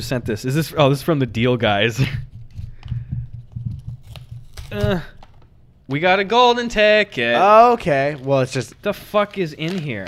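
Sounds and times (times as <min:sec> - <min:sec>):
speech: 0:00.0 - 0:02.3, 0:04.7 - 0:05.2, 0:05.9 - 0:10.0
crunchy package being torn open: 0:03.8 - 0:05.5, 0:08.0 - 0:10.0.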